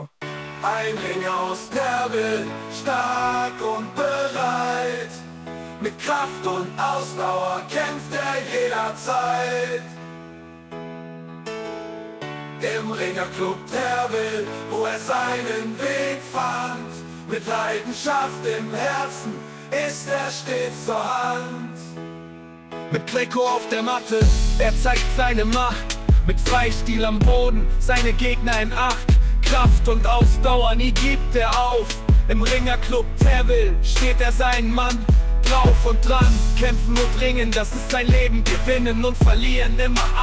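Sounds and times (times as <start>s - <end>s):
rap music: 0.0s - 10.0s, 12.6s - 21.9s, 22.9s - 40.2s.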